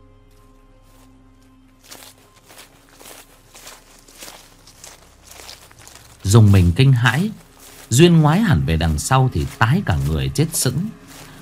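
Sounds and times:
fast footsteps crunching on gravel road: 0.2s - 11.4s
speech: 6.3s - 11.0s.

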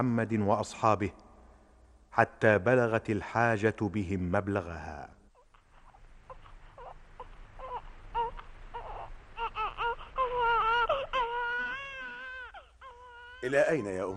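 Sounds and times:
speech: 0.0s - 1.3s, 2.1s - 5.2s, 13.4s - 14.1s
baby crying: 5.4s - 14.1s.

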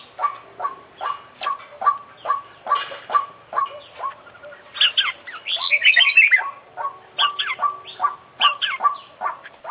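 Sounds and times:
Oriental magpie-robin whistling and chattering song: 0.0s - 9.6s.

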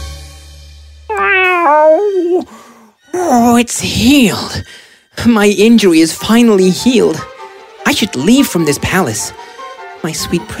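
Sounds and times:
cat meowing: 1.1s - 2.5s
speech: 3.3s - 7.3s, 7.9s - 10.5s.

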